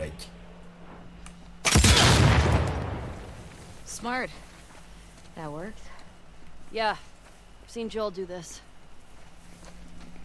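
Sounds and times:
video game land mine explosion: 0:01.7 - 0:03.5
speech: 0:04.0 - 0:04.5, 0:05.4 - 0:06.0, 0:06.7 - 0:07.1, 0:07.7 - 0:08.7.

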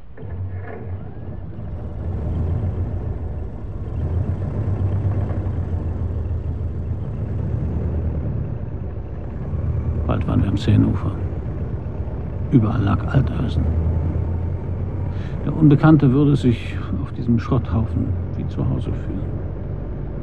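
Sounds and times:
car engine starting and running: 0:00.0 - 0:20.2
speech: 0:10.6 - 0:11.3, 0:12.5 - 0:13.9, 0:15.4 - 0:19.5.

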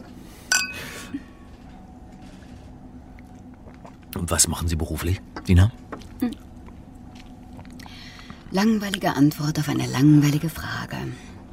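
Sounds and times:
glasses clinking in a toast: 0:00.5 - 0:00.9
speech: 0:04.3 - 0:06.4, 0:08.5 - 0:11.3.

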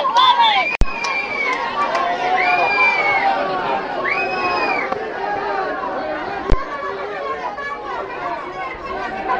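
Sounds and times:
crowd staging a sit-in protest at the town hall door: 0:00.0 - 0:09.3.

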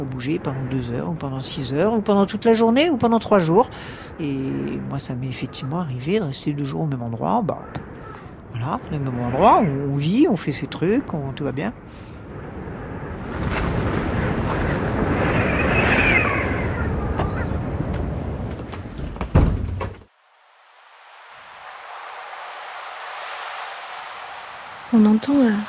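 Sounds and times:
speech: 0:00.0 - 0:07.9, 0:08.6 - 0:12.2, 0:25.0 - 0:25.6
wind behind a dune: 0:00.0 - 0:25.6
waves breaking behind a dune: 0:07.8 - 0:18.5, 0:20.2 - 0:25.6.

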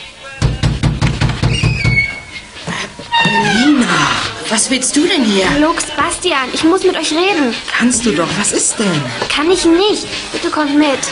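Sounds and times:
knocking on a door: 0:00.4 - 0:03.8
speech: 0:04.5 - 0:11.0.

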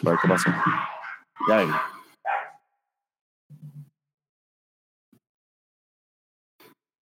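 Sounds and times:
speech: 0:00.0 - 0:01.9
female dogs barking wildly: 0:00.0 - 0:02.6.

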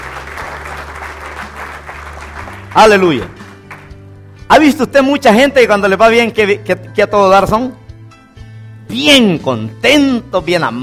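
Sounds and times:
church congregation applauding during a sermon: 0:00.0 - 0:04.2
speech: 0:02.8 - 0:03.4, 0:04.5 - 0:07.8, 0:08.9 - 0:10.8.

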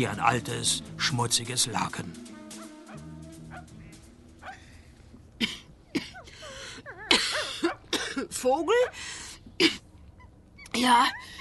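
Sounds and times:
speech: 0:00.0 - 0:02.3, 0:08.4 - 0:09.8, 0:10.8 - 0:11.3
woman coughing: 0:05.4 - 0:06.3, 0:07.0 - 0:08.4, 0:09.6 - 0:09.8.

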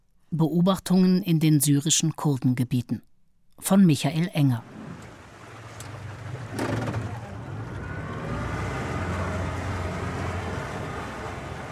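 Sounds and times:
speech: 0:00.3 - 0:04.8
powerful outboard motor pulling a boat backwards onto a river: 0:04.6 - 0:11.7
brief clatter: 0:05.7 - 0:07.2.

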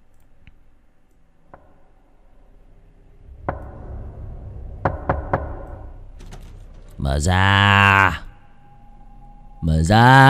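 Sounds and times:
steady low rushing of wind: 0:02.7 - 0:07.0
knocking on a wooden door at night: 0:04.8 - 0:05.6
speech: 0:07.1 - 0:08.2, 0:09.8 - 0:10.2.

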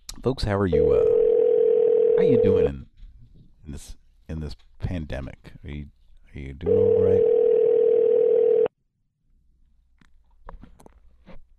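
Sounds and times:
speech: 0:00.2 - 0:01.2, 0:02.2 - 0:02.9, 0:03.7 - 0:07.3
telephone ringing: 0:01.1 - 0:02.7, 0:06.7 - 0:08.7.

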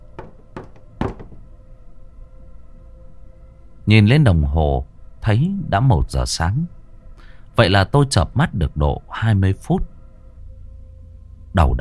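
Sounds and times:
knocking on a door: 0:00.1 - 0:01.5
speech: 0:03.9 - 0:06.8, 0:07.6 - 0:09.9, 0:11.6 - 0:11.7.

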